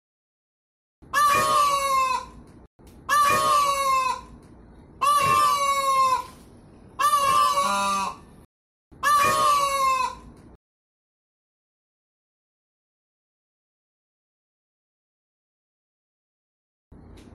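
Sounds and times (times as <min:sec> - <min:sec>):
peafowl braying calls: 0:01.1 - 0:02.4, 0:03.1 - 0:04.4, 0:05.0 - 0:06.4, 0:07.0 - 0:08.3, 0:09.0 - 0:10.3.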